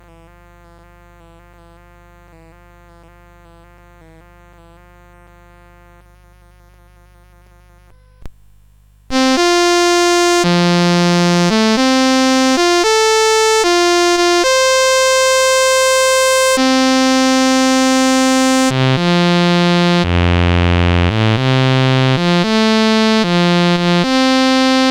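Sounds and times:
sword motif on CSG8580R5 sound chip: 9.1s - 24.8s.

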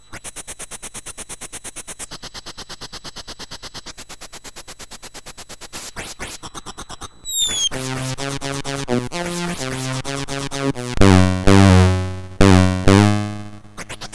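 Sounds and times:
MOS6581R2 synthesized scratch: 7.3s - 14.1s.

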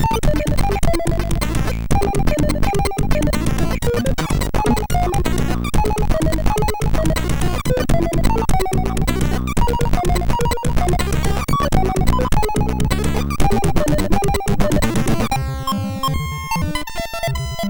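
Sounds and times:
MOS6581R4 SID chip music: 0.0s - 17.6s.

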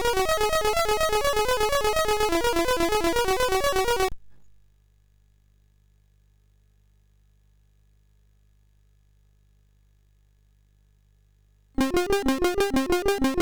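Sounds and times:
SID MOS6581R2 chiptune mix: 0.0s - 4.1s, 11.8s - 13.3s.

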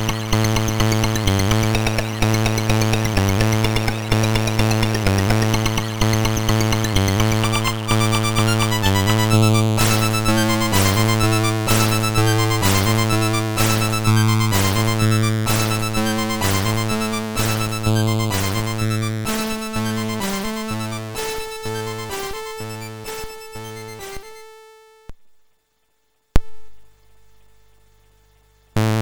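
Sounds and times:
harsh noise from a SID MOS6581R3 sound chip: 0.0s - 24.6s.

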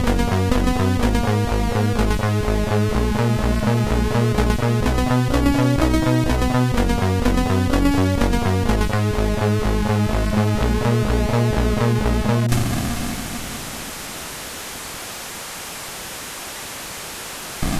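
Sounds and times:
chiptune music on MOS6581R4 chip: 0.0s - 12.5s.

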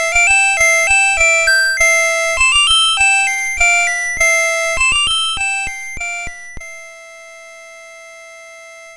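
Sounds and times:
classical piece on MOS6581 sound chip: 0.0s - 6.8s.

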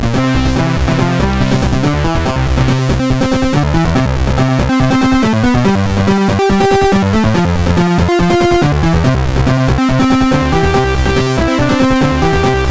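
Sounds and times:
SID chip MOS6581R4 meditation music: 0.2s - 12.7s.

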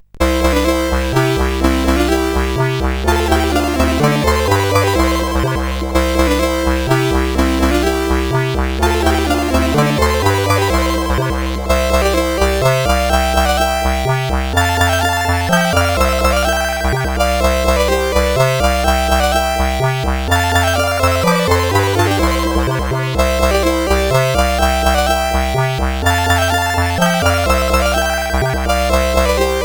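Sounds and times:
game tune on SID CSG8580R5 chip: 0.2s - 29.6s.

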